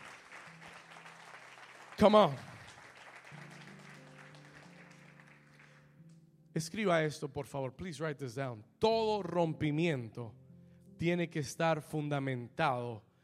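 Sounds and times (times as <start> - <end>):
audience applauding: 0.0 - 6.0
speech: 2.0 - 2.5, 6.6 - 10.4, 11.0 - 13.1.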